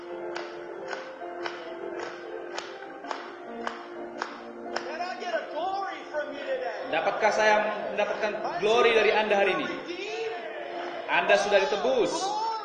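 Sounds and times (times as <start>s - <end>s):
audience clapping in rhythm: 0.0s - 5.3s
speech: 6.9s - 9.9s, 11.1s - 12.4s.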